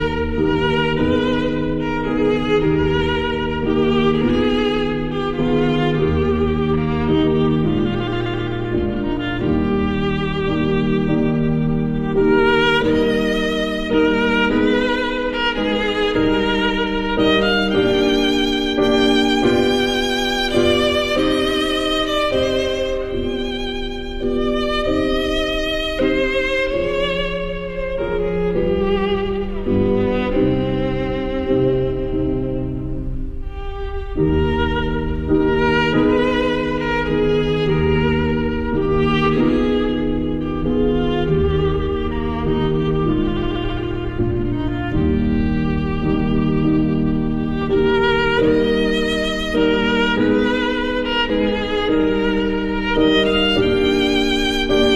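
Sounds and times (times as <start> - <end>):
piano: 0.0 - 54.9
violin: 0.0 - 54.9.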